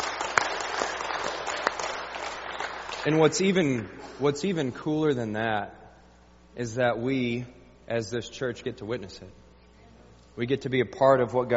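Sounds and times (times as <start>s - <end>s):
church congregation clapping to celebrate baptisms during a Sunday service: 0.0s - 3.9s
speech: 3.0s - 5.8s, 6.6s - 9.4s, 10.4s - 11.5s.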